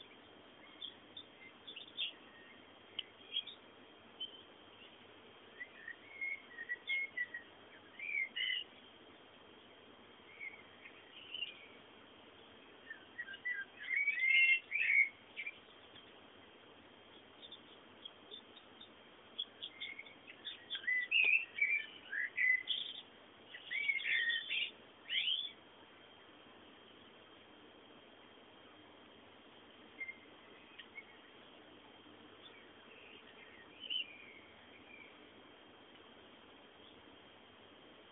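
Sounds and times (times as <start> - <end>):
bird chirping: 0.0 - 25.6, 29.9 - 31.6, 32.3 - 35.4.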